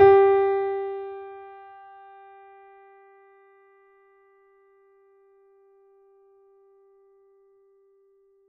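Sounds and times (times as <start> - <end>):
mini grand piano: 0.0 - 3.0.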